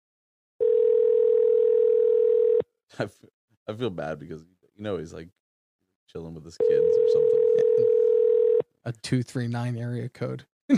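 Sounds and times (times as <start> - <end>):
telephone ringback tone on an outgoing call: 0.6 - 2.6, 6.6 - 8.6
speech: 2.9 - 5.4, 6.1 - 8.0, 8.8 - 10.7.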